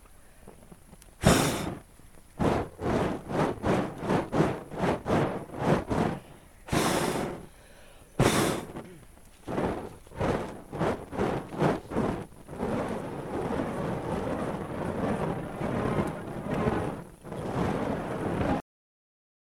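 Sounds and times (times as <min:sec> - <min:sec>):
fire juggling whooshes: 0:00.0 - 0:18.6.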